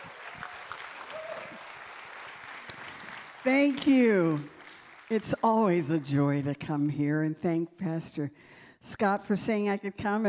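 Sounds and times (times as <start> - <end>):
audience applause at a church service: 0.0 - 5.3
speech: 3.4 - 4.5, 5.1 - 10.2.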